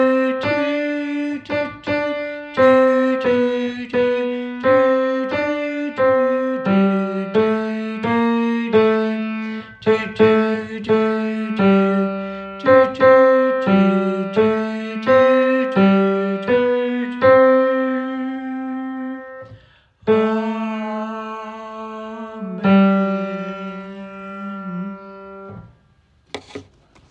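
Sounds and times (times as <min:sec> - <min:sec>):
tenor singing a hymn part for SATB choir: 0:00.0 - 0:25.6.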